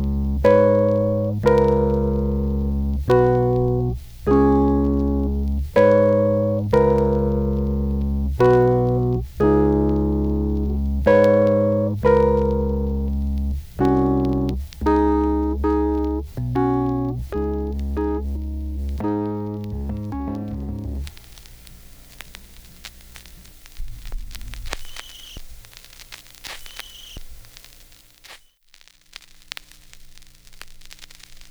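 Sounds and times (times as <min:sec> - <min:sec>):
instrumental music: 0:00.0 - 0:21.3.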